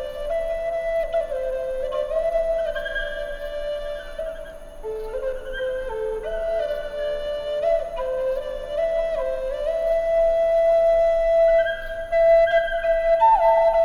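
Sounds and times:
Native American flutes: 0.0 - 13.8
nature sounds: 0.0 - 13.8.

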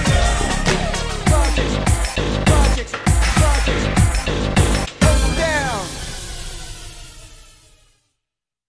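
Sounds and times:
R and B rap over a beat: 0.1 - 5.9.

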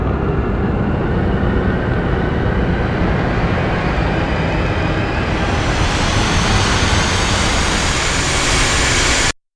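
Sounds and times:
rising coaster sweep: 0.2 - 9.4.

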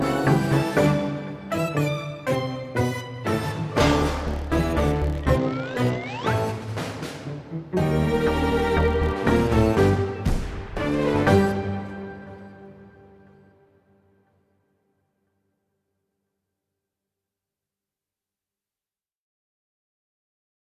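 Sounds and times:
goofy ambient music: 0.0 - 13.8.

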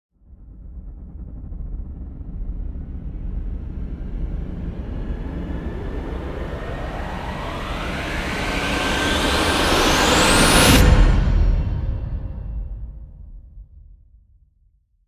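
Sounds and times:
riser sweep: 3.8 - 12.4.

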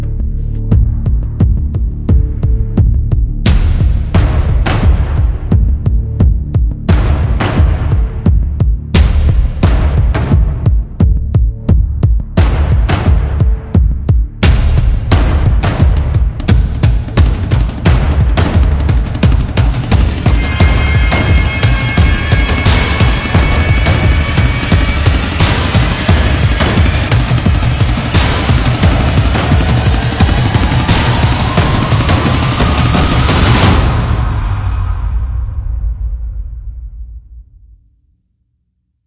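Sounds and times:
percussion: 0.0 - 37.7.

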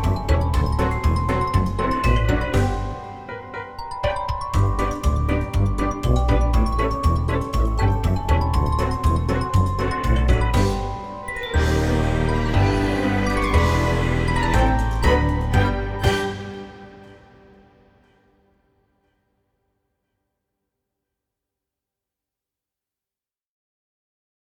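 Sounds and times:
clown ambience: 0.0 - 18.2.

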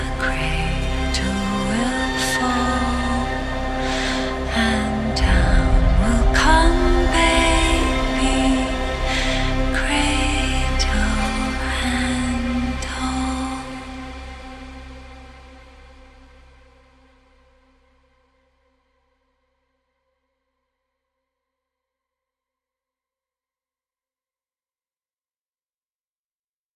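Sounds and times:
intense woman's vocal: 0.0 - 14.6.

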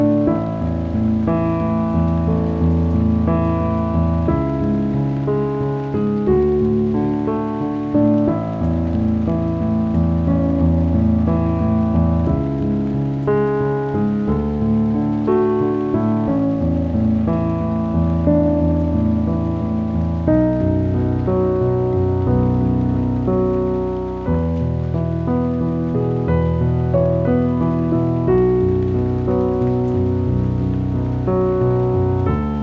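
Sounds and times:
piano thinking music: 0.0 - 32.6
rain: 0.0 - 32.6.

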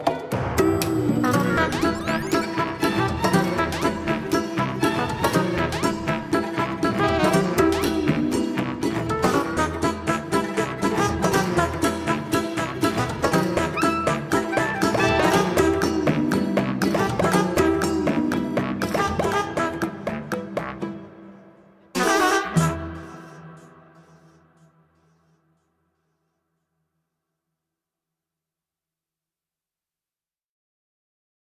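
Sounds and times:
ambient music: 0.0 - 24.8.

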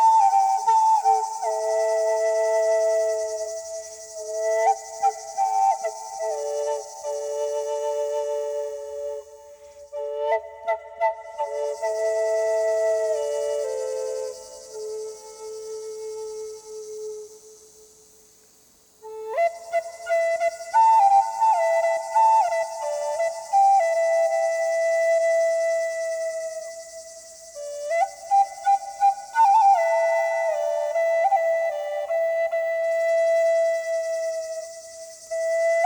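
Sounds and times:
Native American flutes: 0.0 - 17.4, 19.0 - 35.8
cicada calling in the evening: 0.0 - 35.8
sounds of nature: 0.0 - 35.8.

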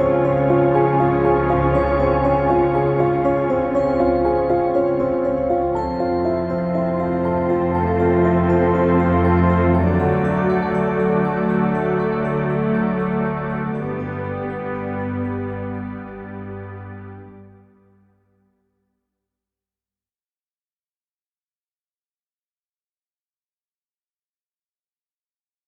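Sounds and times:
ambient music: 0.0 - 18.2.

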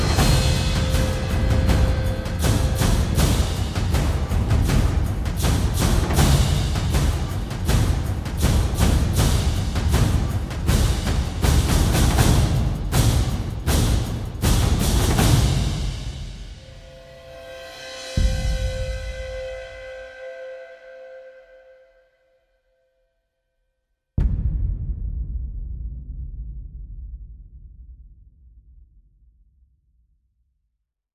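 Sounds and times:
percussion: 0.0 - 22.0, 24.2 - 29.0.

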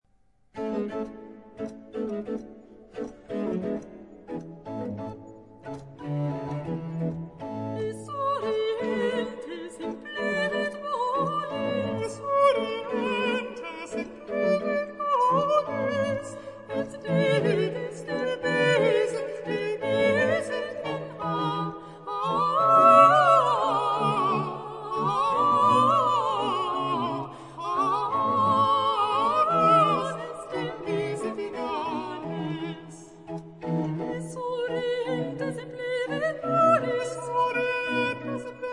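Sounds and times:
soprano and alto aria: 0.6 - 38.7.

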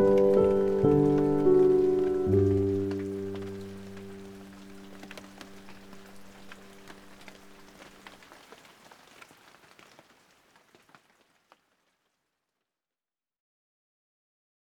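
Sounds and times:
calming piano music: 0.0 - 8.0
rain: 0.0 - 12.2.

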